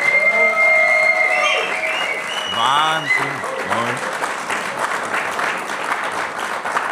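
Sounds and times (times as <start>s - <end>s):
live audience cheering and whooping: 0.0s - 4.1s
live audience applauding: 0.0s - 6.9s.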